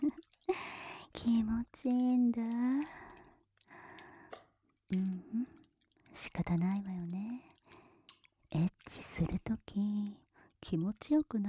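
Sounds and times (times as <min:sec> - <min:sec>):
slimy lotion squishing on skin: 0:00.0 - 0:11.4
speech: 0:01.2 - 0:03.0, 0:04.9 - 0:05.6, 0:06.3 - 0:07.5, 0:08.6 - 0:11.4.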